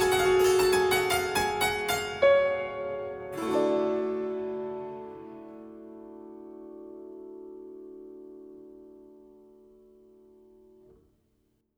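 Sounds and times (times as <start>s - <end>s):
baroque interlude on altered piano: 0.0s - 10.8s.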